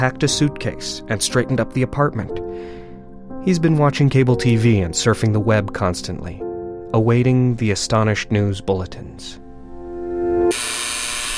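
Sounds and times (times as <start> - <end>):
speech: 0.0 - 2.8, 3.4 - 9.4, 10.5 - 10.8
front door buzzer buzzing: 10.5 - 11.3.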